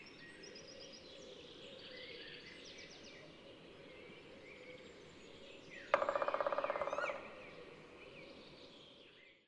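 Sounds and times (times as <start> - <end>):
Dryocopus martius drumming: 5.9 - 7.3
Dryocopus martius calling: 5.9 - 7.5.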